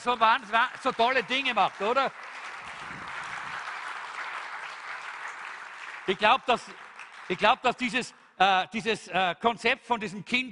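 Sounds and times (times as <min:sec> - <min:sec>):
speech: 0:00.0 - 0:02.4, 0:06.1 - 0:10.5
audience applause: 0:00.0 - 0:08.0.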